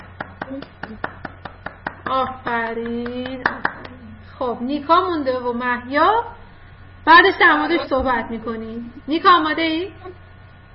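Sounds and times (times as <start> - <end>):
children clapping hands: 0.0 - 4.0
speech: 0.5 - 1.1, 2.1 - 3.7, 4.4 - 6.4, 7.0 - 10.2.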